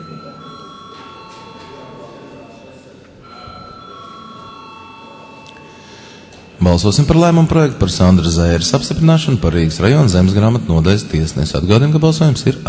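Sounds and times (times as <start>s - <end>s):
chairman's bell ringing: 0.0s - 10.8s
speech: 6.6s - 12.6s.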